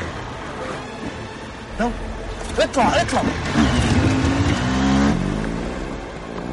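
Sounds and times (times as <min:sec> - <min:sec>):
speech: 0:01.8 - 0:03.8
motorcycle engines revving: 0:02.9 - 0:06.5.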